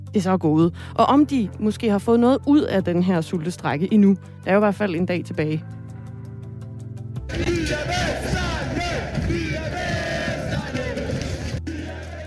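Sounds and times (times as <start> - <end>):
speech: 0.1 - 5.8
football fans celebrating a championship win: 7.3 - 12.2.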